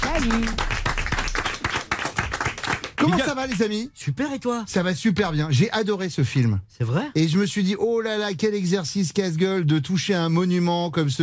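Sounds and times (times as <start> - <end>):
audience applause: 0.0 - 3.6
speech: 0.2 - 0.8, 3.0 - 11.2.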